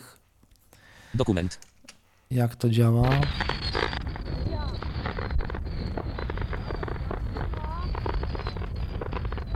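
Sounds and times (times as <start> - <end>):
speech: 1.1 - 1.7, 2.3 - 3.5
fireworks exploding on an old dictaphone recording from the late 1990s: 3.0 - 9.5.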